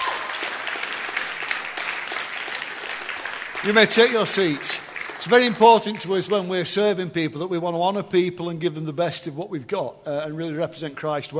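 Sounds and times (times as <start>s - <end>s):
crowd applause: 0.0s - 6.5s
speech: 3.6s - 11.3s.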